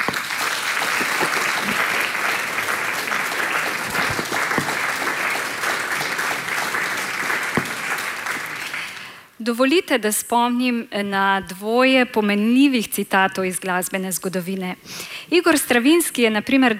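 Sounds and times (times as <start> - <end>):
audience applause: 0.0 - 9.2
speech: 9.5 - 16.7.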